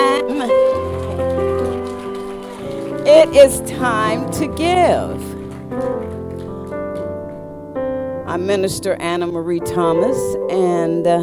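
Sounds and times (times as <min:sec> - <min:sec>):
crowd audience clapping: 0:00.0 - 0:07.4
speech: 0:03.2 - 0:05.3, 0:08.4 - 0:11.2.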